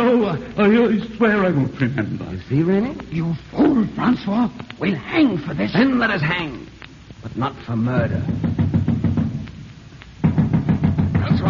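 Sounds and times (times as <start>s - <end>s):
speech: 0.4s - 8.6s
king's watch knocking on a door: 8.0s - 9.4s, 10.2s - 11.4s.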